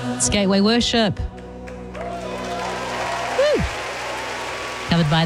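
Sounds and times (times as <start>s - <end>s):
speech: 0.2s - 1.3s, 5.0s - 5.2s
applause: 1.3s - 5.2s.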